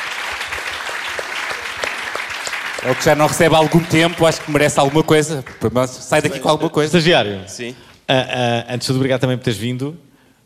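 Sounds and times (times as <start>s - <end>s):
crowd applauding: 0.0s - 6.6s
speech: 2.8s - 10.4s.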